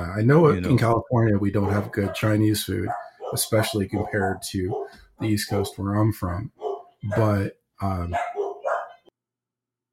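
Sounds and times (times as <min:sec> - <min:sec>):
speech: 0:00.0 - 0:08.3
dog barking near the door of a home: 0:01.6 - 0:05.8, 0:06.5 - 0:07.4, 0:08.1 - 0:09.1.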